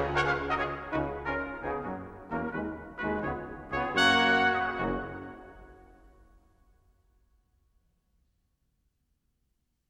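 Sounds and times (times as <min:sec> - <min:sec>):
brass ensemble: 0:00.0 - 0:06.1.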